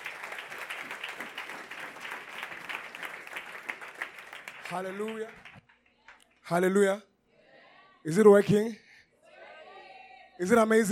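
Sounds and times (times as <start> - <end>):
church congregation applauding: 0.0 - 6.5
speech: 4.7 - 5.5, 6.5 - 7.1, 8.0 - 8.8, 10.4 - 10.9.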